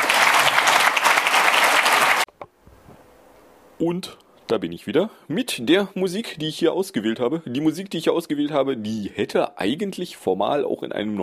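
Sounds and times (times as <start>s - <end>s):
warm applause: 0.0s - 2.3s
speech: 3.8s - 11.2s.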